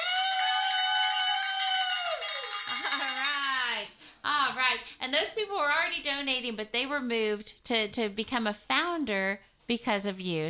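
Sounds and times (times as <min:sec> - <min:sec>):
bell ringing: 0:00.6 - 0:03.8
speech: 0:03.8 - 0:10.4.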